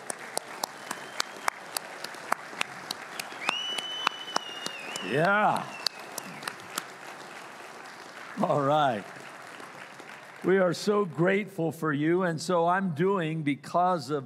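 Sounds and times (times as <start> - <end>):
audience applause: 0.0 - 11.2
speech: 5.1 - 5.8, 8.4 - 9.2, 10.4 - 14.2.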